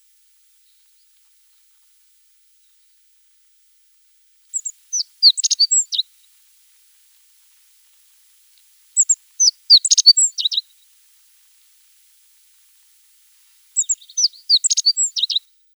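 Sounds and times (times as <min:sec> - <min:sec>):
Godlewski's bunting calling: 0:04.5 - 0:06.0, 0:09.0 - 0:10.6, 0:13.8 - 0:15.4.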